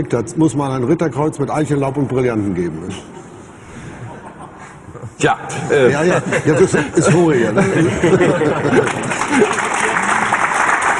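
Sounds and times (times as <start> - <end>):
speech: 0.0 - 3.2, 4.9 - 9.6
laughter: 5.6 - 10.5
audience applause: 8.3 - 10.9.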